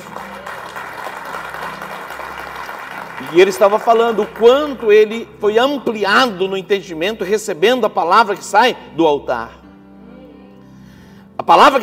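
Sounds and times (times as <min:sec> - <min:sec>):
audience applause: 0:00.0 - 0:05.1
speech: 0:03.2 - 0:09.6, 0:11.4 - 0:11.8.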